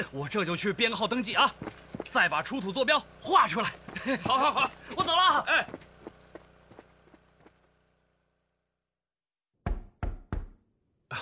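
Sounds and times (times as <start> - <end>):
speech: 0.0 - 5.8
laughter: 3.6 - 5.6
knocking on a door: 9.6 - 10.6.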